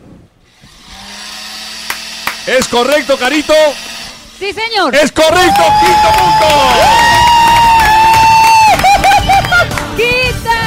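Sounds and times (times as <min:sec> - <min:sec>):
blender running: 0:00.5 - 0:08.6
speech: 0:02.4 - 0:07.1
laughter: 0:05.8 - 0:10.0.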